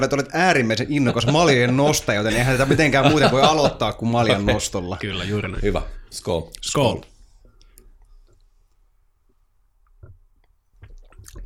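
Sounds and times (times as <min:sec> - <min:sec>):
speech: 0:00.0 - 0:07.1
laughter: 0:00.9 - 0:05.6
wine tasting slurping: 0:02.3 - 0:03.0.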